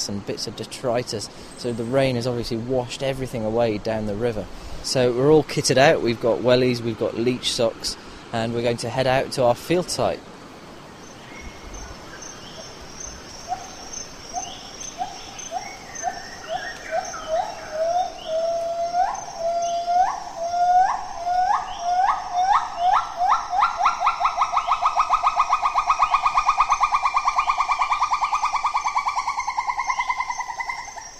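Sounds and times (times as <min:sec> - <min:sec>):
speech: 0:00.0 - 0:10.3
female Bornean gibbon call: 0:12.2 - 0:31.1.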